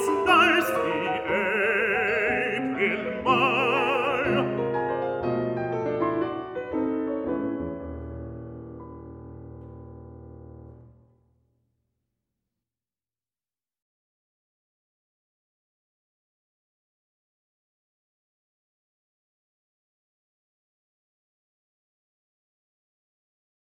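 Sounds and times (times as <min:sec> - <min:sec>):
baritone singing: 0:00.0 - 0:04.8
piano: 0:00.0 - 0:11.7.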